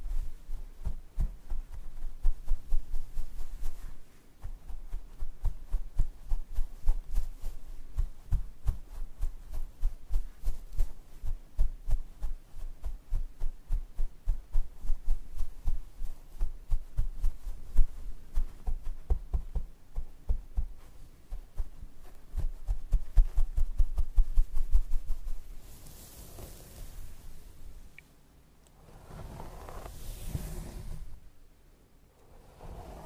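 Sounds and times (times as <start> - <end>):
soft low thumps: 0.0 - 25.6
scalp massage and hair brushing scratchy strokes: 0.0 - 27.9, 28.8 - 31.3, 32.2 - 33.0
soft whooshing rubs: 0.0 - 31.4, 32.2 - 33.0.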